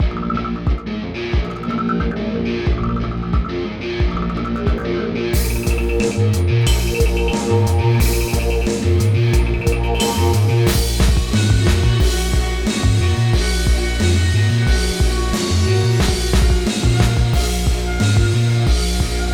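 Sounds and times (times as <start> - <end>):
boss battle music loop: 0.0 - 19.3.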